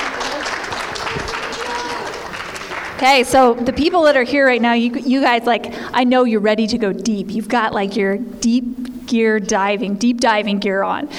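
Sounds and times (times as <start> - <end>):
audience applause: 0.0 - 3.8
speech: 3.0 - 11.1.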